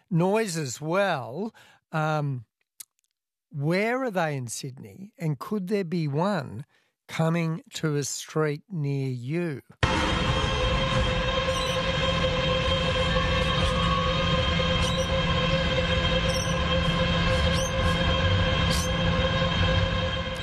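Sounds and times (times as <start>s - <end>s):
speech: 0.1s - 2.5s, 3.5s - 10.2s
data centre humming: 9.8s - 20.4s.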